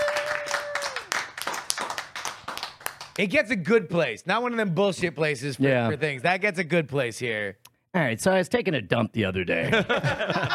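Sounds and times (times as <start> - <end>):
applause: 0.0 - 3.3
speech: 3.2 - 10.5
laughter: 9.6 - 10.5.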